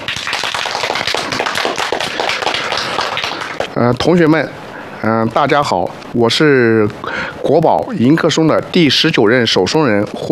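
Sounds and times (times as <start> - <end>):
audience applause: 0.0 - 3.7
speech: 3.8 - 10.3.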